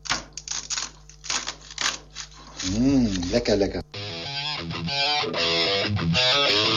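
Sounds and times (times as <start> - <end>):
knife cutting through crisp green beans: 0.0 - 3.4
speech: 2.6 - 3.9, 4.6 - 6.6.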